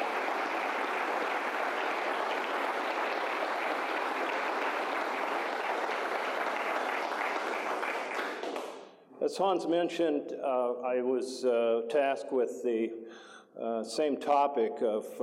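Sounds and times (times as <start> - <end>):
audience applause: 0.0 - 8.8
speech: 9.3 - 15.2.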